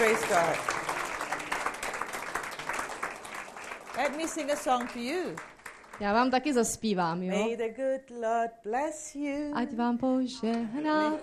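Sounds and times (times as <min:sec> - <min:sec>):
speech: 0:00.0 - 0:00.8, 0:04.0 - 0:11.2
audience clapping: 0:00.0 - 0:06.8.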